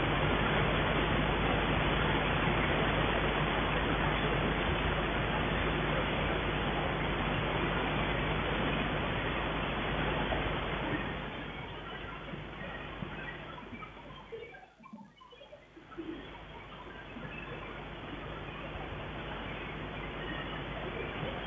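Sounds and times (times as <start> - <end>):
DX-21 synthesizer through DSP filter with germanium receptor: 0.0 - 21.4.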